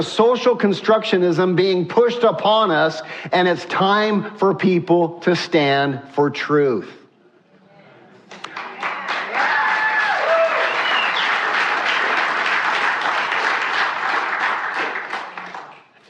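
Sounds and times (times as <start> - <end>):
speech: 0.0 - 7.0
audience applause: 8.4 - 16.0.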